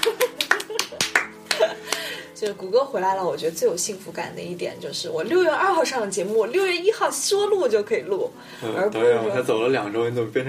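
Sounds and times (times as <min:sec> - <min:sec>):
applause: 0:00.0 - 0:02.2
speech: 0:02.4 - 0:10.4.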